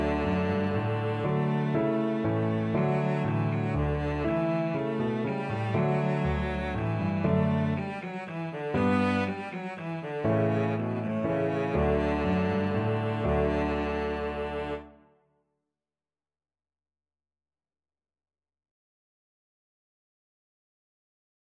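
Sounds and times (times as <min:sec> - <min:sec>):
cello playing a minuet: 0:00.0 - 0:15.0.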